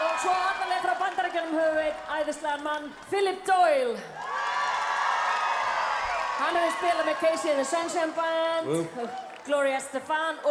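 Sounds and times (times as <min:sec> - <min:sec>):
audience cheering: 0:00.0 - 0:02.2, 0:04.2 - 0:09.6
audience clapping: 0:00.0 - 0:10.4
speech: 0:01.3 - 0:04.3, 0:06.4 - 0:10.4.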